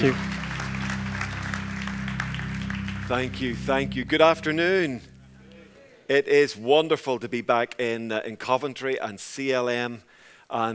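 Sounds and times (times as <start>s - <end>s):
speech: 0.0s - 0.3s, 3.1s - 5.1s, 6.1s - 10.7s
audience applause welcoming a speaker at a church gathering: 0.0s - 4.0s
low hum: 0.0s - 5.8s.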